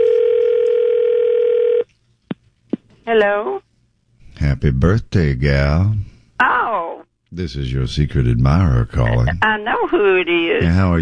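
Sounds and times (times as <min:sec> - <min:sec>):
telephone dial tone as a call is placed: 0:00.0 - 0:01.8
speech: 0:03.1 - 0:03.6, 0:04.6 - 0:06.1, 0:07.3 - 0:11.0.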